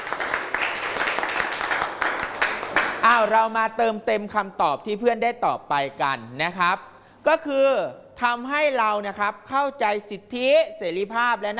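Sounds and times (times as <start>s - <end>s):
class applauding: 0.0s - 3.3s
speech: 3.0s - 11.5s.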